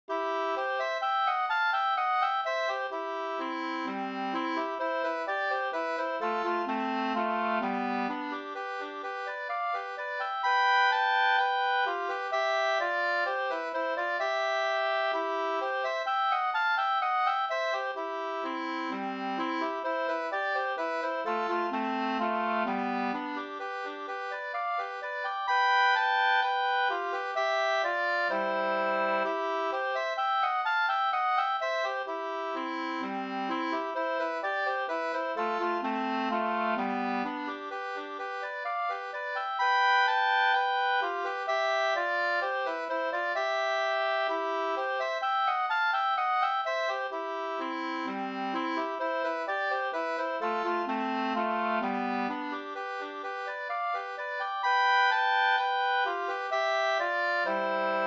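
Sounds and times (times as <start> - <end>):
folk walking tune: 0.1 - 58.0.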